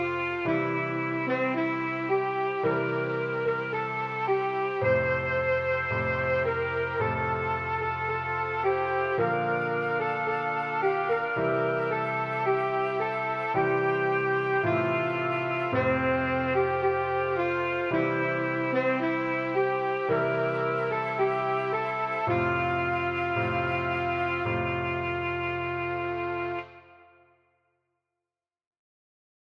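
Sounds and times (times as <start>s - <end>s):
saxophone playing D: 0.0s - 27.3s.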